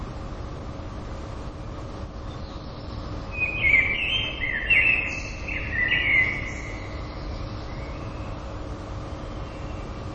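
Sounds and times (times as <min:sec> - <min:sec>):
common blackbird singing: 0:02.2 - 0:10.0.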